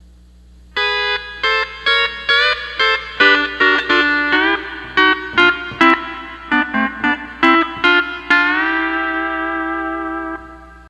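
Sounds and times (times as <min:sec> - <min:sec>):
12-string lap guitar playing: 0:00.8 - 0:10.8.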